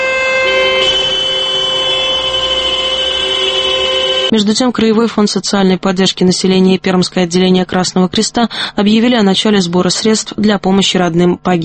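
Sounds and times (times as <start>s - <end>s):
car horns honking in mourning: 0.0s - 4.3s
speech: 4.3s - 11.6s.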